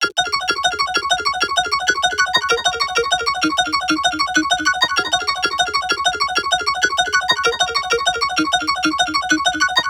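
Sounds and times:
arpeggio loop: 0.0s - 9.8s.

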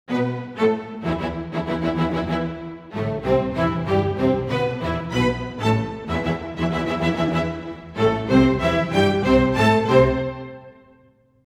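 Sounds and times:
orchestral strings in E minor: 0.1s - 11.2s.

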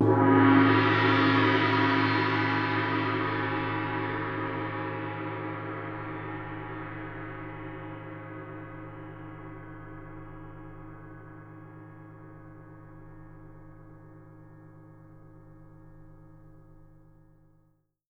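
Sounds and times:
gong: 0.0s - 17.0s.

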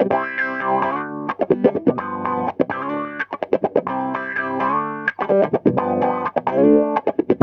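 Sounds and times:
roots disco guitar: 0.0s - 7.4s.

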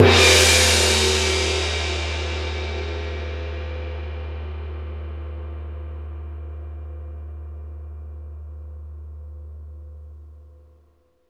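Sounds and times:
gongs: 0.0s - 7.8s.

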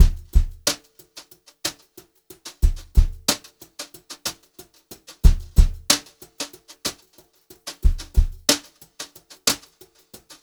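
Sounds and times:
brushed drum loops: 0.0s - 0.8s, 2.6s - 3.4s, 5.2s - 6.0s, 7.8s - 8.6s.

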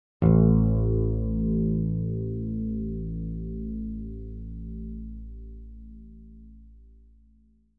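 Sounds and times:
bright bass note A1: 0.2s - 6.6s.

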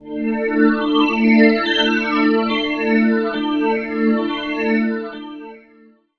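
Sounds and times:
ambient pad: 0.0s - 5.6s.

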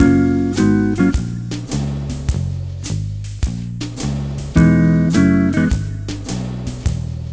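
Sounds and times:
multiple guitars playing swing in F sharp at 105 BPM: 0.0s - 3.1s, 4.4s - 7.0s.

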